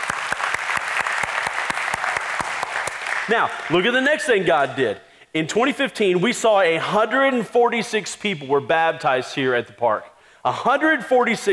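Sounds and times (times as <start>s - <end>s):
audience round of applause: 0.0s - 3.8s
speech: 3.3s - 11.5s.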